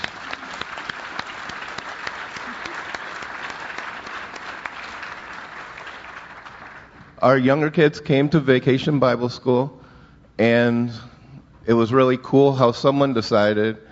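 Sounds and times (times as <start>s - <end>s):
audience applause: 0.0s - 7.0s
speech: 7.2s - 9.8s, 10.4s - 11.1s, 11.7s - 13.8s.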